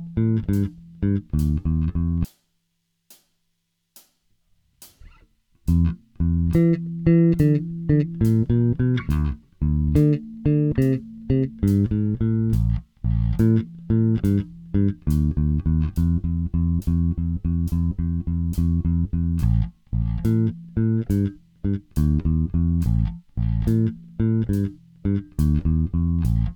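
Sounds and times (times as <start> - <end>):
shuffle blues bass: 0.0 - 2.3, 4.9 - 26.5.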